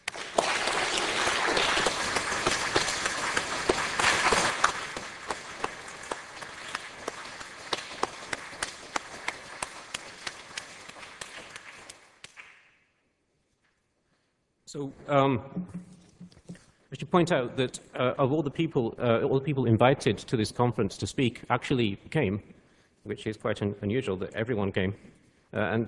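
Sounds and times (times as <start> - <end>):
audience applause: 0.0 - 12.4
speech: 14.8 - 15.9, 17.1 - 22.5, 23.1 - 25.8.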